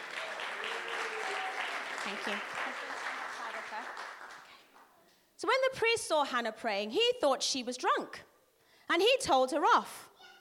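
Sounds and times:
audience applause: 0.0 - 4.6
speech: 2.1 - 3.1, 5.4 - 8.3, 8.9 - 10.1.

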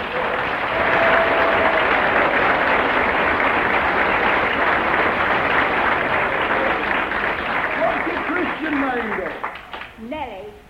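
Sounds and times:
audience applause: 0.0 - 10.0.

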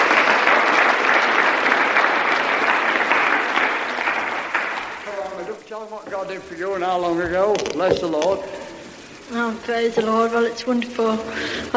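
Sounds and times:
crowd applauding: 0.0 - 9.3
speech: 6.2 - 8.6, 9.3 - 11.7.

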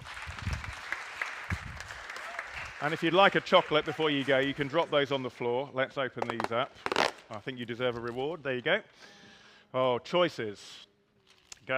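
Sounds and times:
audience round of applause: 0.0 - 5.2
speech: 2.8 - 10.9.

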